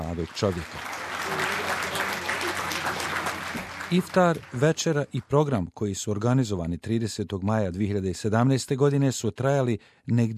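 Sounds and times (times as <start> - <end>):
applause at an iftar dinner honouring a young man: 0.0 - 5.5
speech: 0.1 - 2.3, 3.9 - 10.3.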